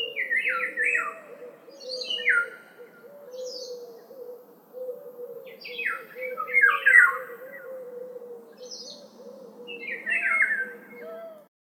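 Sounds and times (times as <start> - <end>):
birds singing: 0.0 - 11.5.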